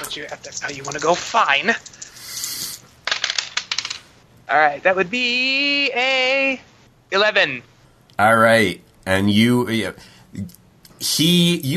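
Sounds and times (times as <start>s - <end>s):
dice shaken and tumbling onto a hard surface: 0.0s - 4.0s
speech: 0.2s - 2.1s, 4.5s - 11.7s.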